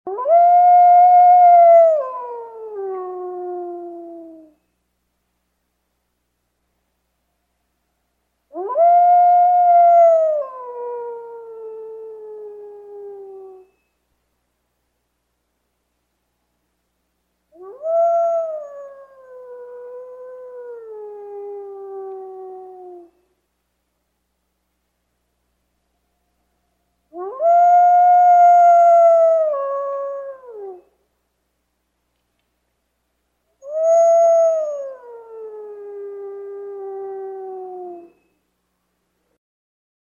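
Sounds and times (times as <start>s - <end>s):
long howl at the moon: 0.1s - 4.6s, 8.5s - 13.9s, 17.6s - 23.3s, 26.4s - 31.0s, 33.6s - 38.4s.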